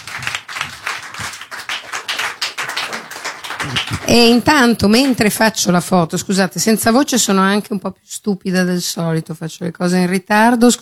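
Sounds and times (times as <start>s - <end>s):
audience applause: 0.0s - 4.4s
speech: 3.6s - 10.8s.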